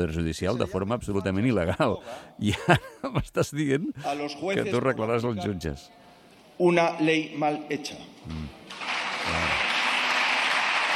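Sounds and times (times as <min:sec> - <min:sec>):
speech: 0:00.0 - 0:06.0, 0:06.6 - 0:09.6
audience applause: 0:08.7 - 0:10.9.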